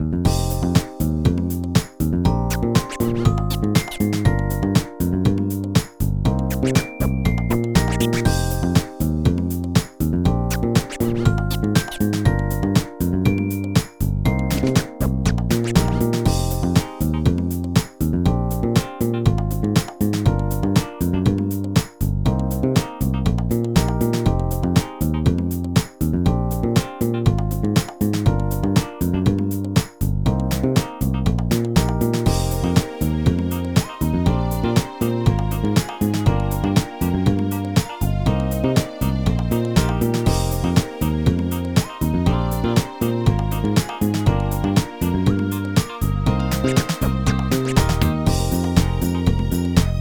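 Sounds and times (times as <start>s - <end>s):
hip-hop karaoke backing track: 0.3s - 22.1s, 22.8s - 50.0s.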